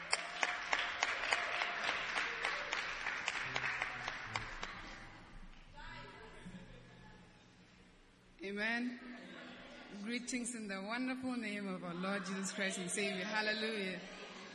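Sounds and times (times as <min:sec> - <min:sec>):
audience clapping hands: 0:00.0 - 0:05.8
speech: 0:08.6 - 0:09.1, 0:10.0 - 0:14.2.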